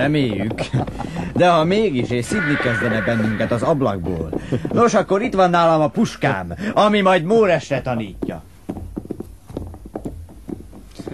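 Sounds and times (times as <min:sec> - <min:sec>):
speech: 0:00.0 - 0:08.4
horses' hooves as riders climb a castle hill: 0:00.0 - 0:11.1.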